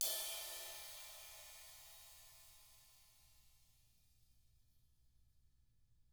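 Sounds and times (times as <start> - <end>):
ride cymbal swish: 0.0 - 2.3.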